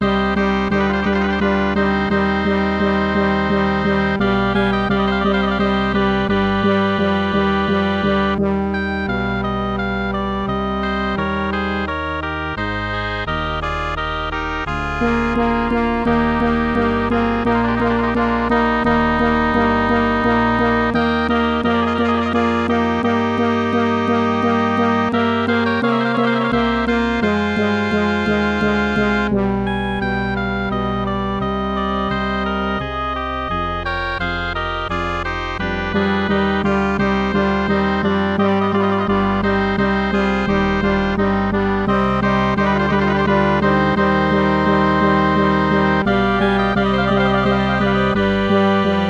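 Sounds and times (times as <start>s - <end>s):
MIDI music: 0.0s - 49.0s.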